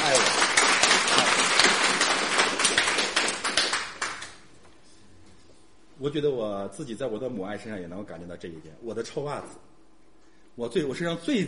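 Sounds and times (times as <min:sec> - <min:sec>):
audience applause: 0:00.0 - 0:04.4
speech: 0:06.0 - 0:09.7, 0:10.6 - 0:11.4.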